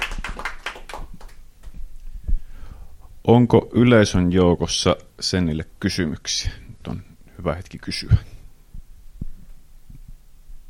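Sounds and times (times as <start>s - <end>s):
audience applause: 0.0s - 1.4s
speech: 3.2s - 8.3s.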